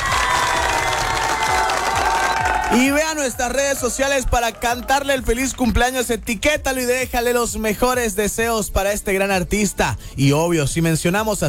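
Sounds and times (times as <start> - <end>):
applause and cheering: 0.0 - 6.3
speech: 2.7 - 11.4.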